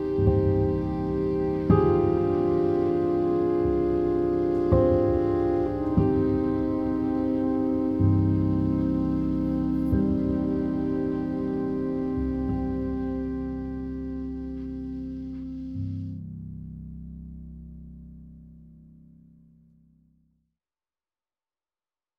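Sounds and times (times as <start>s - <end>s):
saxophone twisted: 0.0s - 16.2s.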